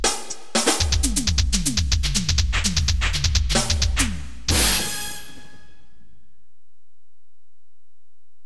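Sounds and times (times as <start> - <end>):
drums: 0.0 - 5.6.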